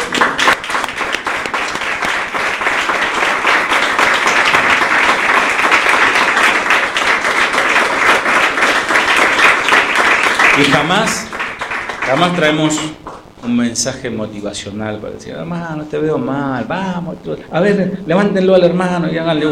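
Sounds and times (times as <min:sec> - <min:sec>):
audience applauding: 0:00.0 - 0:13.8
speech: 0:10.6 - 0:11.3, 0:12.1 - 0:19.4.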